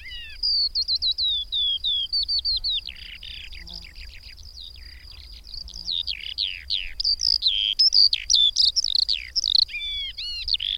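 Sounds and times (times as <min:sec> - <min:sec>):
Eurasian skylark song of sharp high chirps and downslurred notes: 0:00.0 - 0:10.7.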